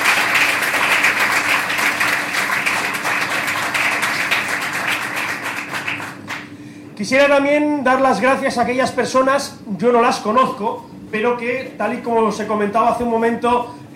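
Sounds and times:
crowd applauding steadily: 0:00.0 - 0:06.5
speech: 0:07.0 - 0:13.9.

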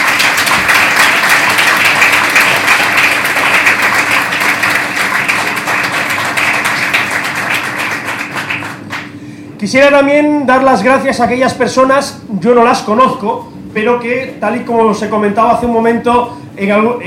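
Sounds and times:
loud crowd applause: 0:00.0 - 0:09.2
speech: 0:09.6 - 0:17.0.

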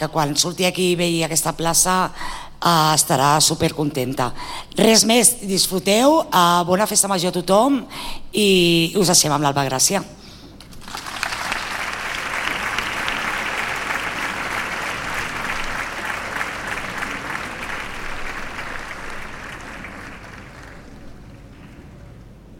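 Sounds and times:
speech: 0:00.0 - 0:10.2
crowd applauding at a town festival: 0:10.6 - 0:22.4.

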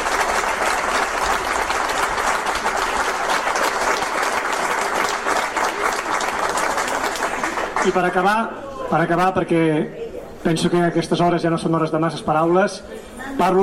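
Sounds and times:
audience applause: 0:00.0 - 0:08.4
speech: 0:07.9 - 0:13.6.

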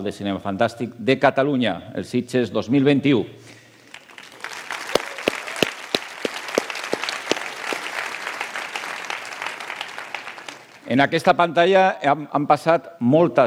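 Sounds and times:
speech: 0:00.0 - 0:03.6, 0:10.9 - 0:13.4
audience applause: 0:03.9 - 0:10.8.

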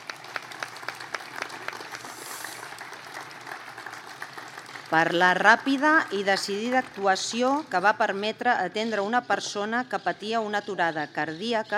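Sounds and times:
audience applause: 0:00.0 - 0:07.0
speech: 0:04.9 - 0:11.7.

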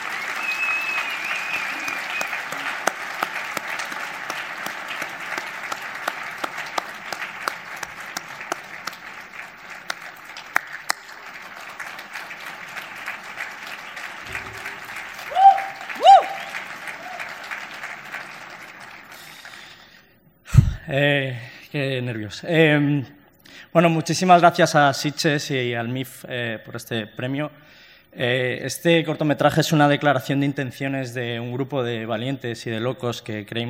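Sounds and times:
large audience applause at award ceremony: 0:00.0 - 0:20.0
whoops: 0:00.1 - 0:02.8, 0:15.1 - 0:17.4
speech: 0:20.9 - 0:33.6.

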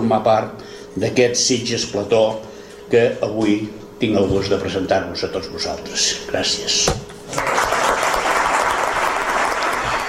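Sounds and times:
speech: 0:00.1 - 0:07.6
audience applause: 0:07.4 - 0:10.0.

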